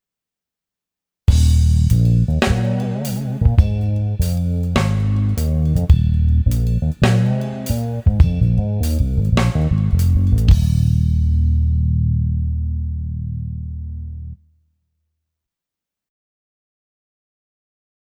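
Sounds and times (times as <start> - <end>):
drums: 1.3 - 11.8
bass: 1.3 - 14.5.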